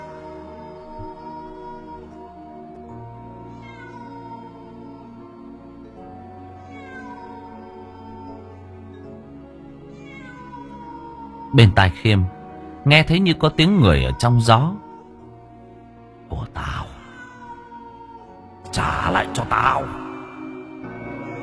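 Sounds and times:
cat yowling: 0.0s - 5.4s, 6.4s - 8.8s, 9.8s - 12.0s, 13.8s - 15.4s, 16.4s - 20.5s
speech: 11.5s - 14.8s.

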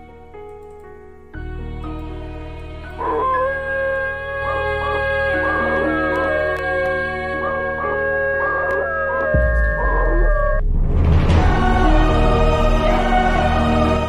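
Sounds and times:
low drone: 1.7s - 14.0s
dog howling eerily in a forest: 2.8s - 10.6s.

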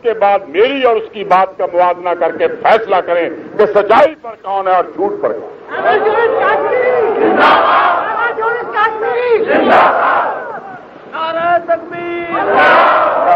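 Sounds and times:
speech: 0.0s - 10.4s, 11.2s - 13.3s
rally crowd chanting a slogan at a political gathering: 5.7s - 13.3s.

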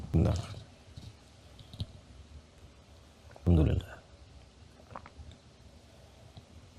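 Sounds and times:
speech: 0.1s - 0.6s
speaker drinking water, swallowing: 4.8s - 5.2s.

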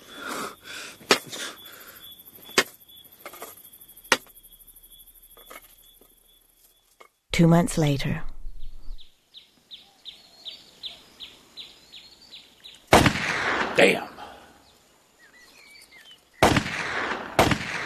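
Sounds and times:
speech: 7.4s - 8.3s, 13.8s - 14.1s
gunshots fired at playing cards: 12.9s - 14.3s, 16.4s - 17.8s.

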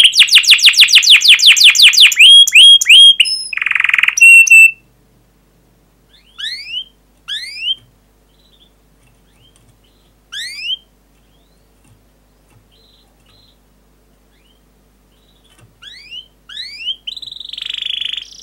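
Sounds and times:
canary singing fast trills: 0.0s - 4.9s, 6.1s - 13.7s, 14.3s - 18.4s.

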